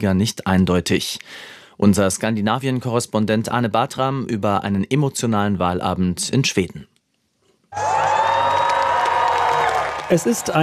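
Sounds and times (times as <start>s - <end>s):
speech: 0.0s - 6.9s, 7.7s - 8.1s, 10.1s - 10.6s
Swedish Social Democrats cheering and whooping on election night: 7.7s - 10.6s.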